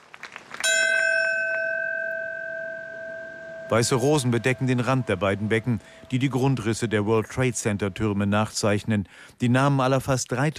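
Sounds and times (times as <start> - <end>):
fire department bell ringing: 0.6 - 8.7
speech: 3.7 - 10.5.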